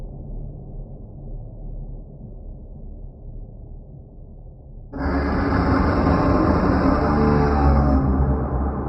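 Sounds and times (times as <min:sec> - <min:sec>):
whale sounds: 0:05.0 - 0:08.7.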